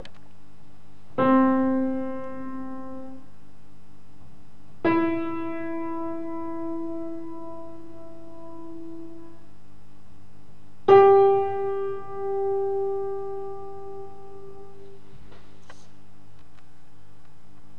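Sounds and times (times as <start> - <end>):
pianoforte: 1.1 - 3.5, 4.8 - 9.8, 10.8 - 15.6.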